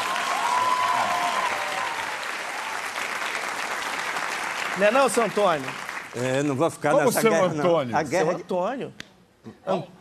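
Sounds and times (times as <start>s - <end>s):
audience applause: 0.0s - 6.5s
speech: 4.8s - 10.0s.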